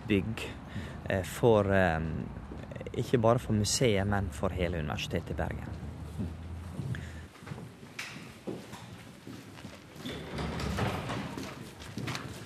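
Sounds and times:
speech: 0.1s - 6.4s
footsteps entering through the large doors of Bergen Museum: 5.5s - 12.4s.

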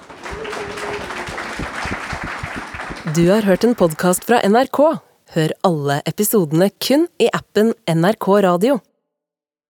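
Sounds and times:
audience applause: 0.0s - 3.5s
speech: 3.1s - 8.9s.

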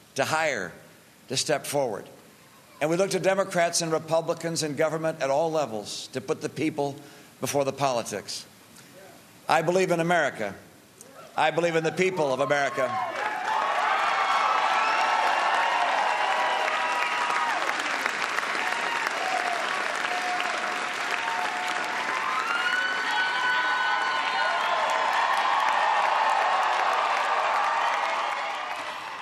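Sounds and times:
speech: 0.2s - 2.2s, 2.8s - 8.5s, 9.5s - 10.6s, 11.4s - 13.2s
crowd applause after speech: 12.9s - 29.2s.

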